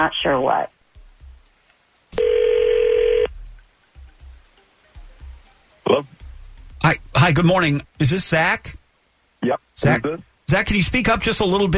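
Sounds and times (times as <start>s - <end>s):
speech: 0.0s - 0.8s, 5.9s - 6.2s, 6.8s - 8.8s, 9.4s - 11.7s
telephone call ringing: 2.2s - 3.3s.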